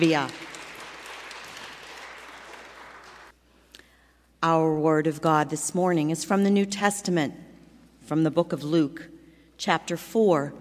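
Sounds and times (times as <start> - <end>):
speech: 0.0 - 0.4, 4.4 - 7.4, 8.1 - 10.5
audience applause: 0.0 - 3.3.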